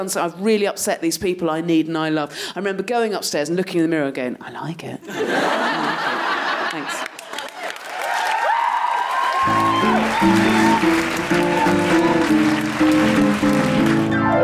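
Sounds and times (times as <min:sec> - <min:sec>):
speech: 0:00.0 - 0:05.8, 0:10.2 - 0:11.3
laughter: 0:05.1 - 0:07.9
audience clapping, cheering and whooping to welcome a speaker: 0:06.4 - 0:14.4
music with distinct notes: 0:09.4 - 0:14.4.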